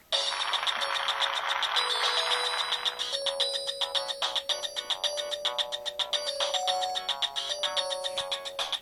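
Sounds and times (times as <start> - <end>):
Samsung SGH-E700 ringtone: 0.1 - 8.8.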